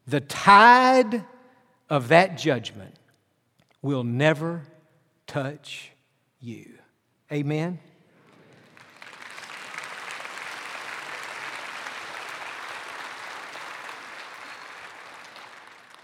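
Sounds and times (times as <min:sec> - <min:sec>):
speech: 0:00.1 - 0:01.3, 0:01.9 - 0:03.0, 0:03.8 - 0:04.7, 0:05.3 - 0:07.9
church audience clapping: 0:08.2 - 0:16.0.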